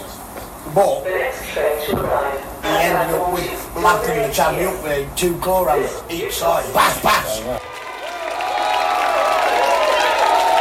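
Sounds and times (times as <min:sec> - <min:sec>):
speech: 0:00.7 - 0:07.7
crowd applauding and cheering at a live concert: 0:07.6 - 0:10.5.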